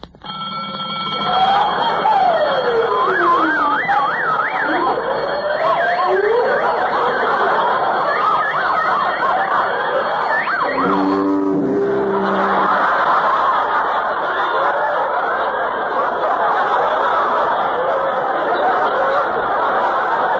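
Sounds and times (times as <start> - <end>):
safe alarm siren wailing and warbling: 0.4 - 14.7
laughter: 1.3 - 20.3.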